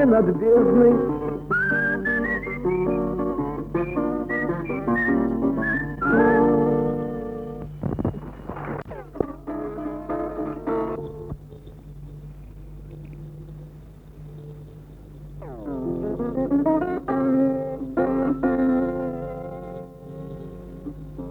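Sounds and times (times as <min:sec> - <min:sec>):
speech: 0:00.0 - 0:01.2
steady low hum: 0:00.0 - 0:21.2
whistling in the dark: 0:01.2 - 0:07.5.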